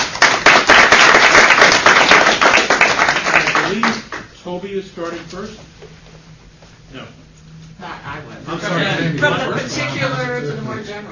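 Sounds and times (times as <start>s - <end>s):
conference audience applause welcoming a panel: 0.0s - 4.2s
speech: 4.5s - 6.0s, 7.8s - 11.1s.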